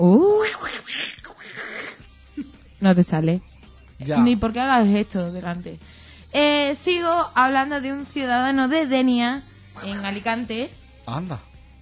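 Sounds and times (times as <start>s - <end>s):
speech: 0.0s - 0.7s, 2.8s - 11.5s
raspy squawking duck-like vocalizations in a Donald Duck sound clip: 0.4s - 2.0s.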